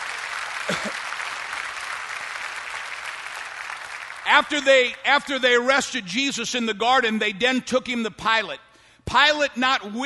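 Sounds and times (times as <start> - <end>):
audience applause: 0.0 - 4.4
speech: 4.3 - 10.0.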